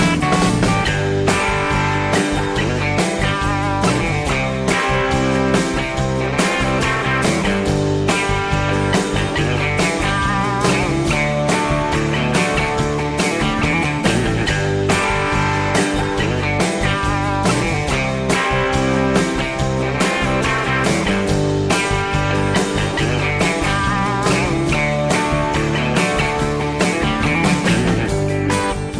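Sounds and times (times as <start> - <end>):
country tune: 0.0 - 28.9.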